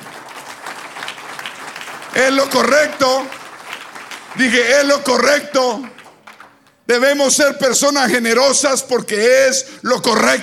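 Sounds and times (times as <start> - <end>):
audience applause: 0.0 - 6.8
speech: 2.2 - 3.4, 4.4 - 6.0, 6.9 - 10.4.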